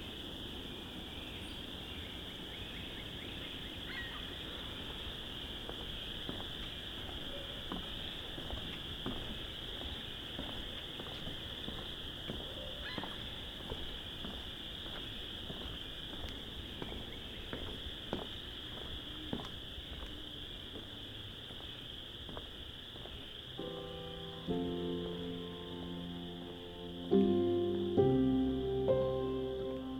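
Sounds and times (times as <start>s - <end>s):
steady high insect trill at dusk in Vinemount Swamp in spring: 0.0s - 29.9s
soft footsteps: 4.7s - 23.8s.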